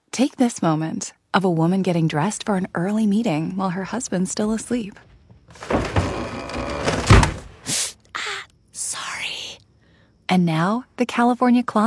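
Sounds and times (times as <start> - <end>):
speech: 0.2 - 5.9, 10.3 - 11.8
wooden drawer scraping along its runners: 5.5 - 7.7.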